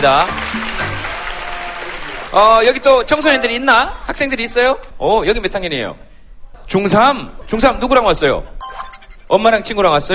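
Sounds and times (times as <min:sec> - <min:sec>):
speech: 0:00.0 - 0:00.9, 0:02.3 - 0:06.1, 0:06.7 - 0:08.6, 0:09.3 - 0:10.1
audience applause: 0:00.0 - 0:02.7.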